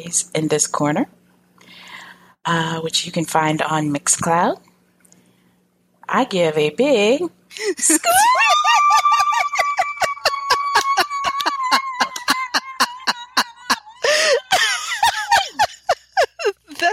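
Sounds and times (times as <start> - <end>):
speech: 0.0 - 1.2, 2.4 - 4.7, 6.1 - 9.2
breathy laughter: 7.6 - 16.7
high-pitched human squeal: 8.0 - 14.5.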